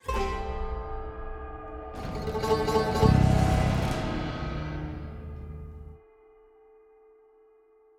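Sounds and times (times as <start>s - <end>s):
action music intro: 1.2s - 6.0s.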